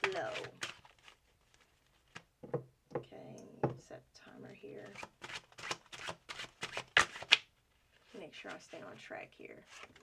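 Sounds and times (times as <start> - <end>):
tarot cards being shuffled: 0.0 - 2.3, 4.9 - 8.8
speech: 8.2 - 10.0.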